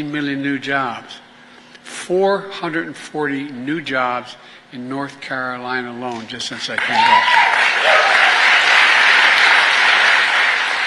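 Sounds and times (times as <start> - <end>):
speech: 0.0 - 1.2, 2.1 - 8.1
crowd applauding: 6.8 - 10.8.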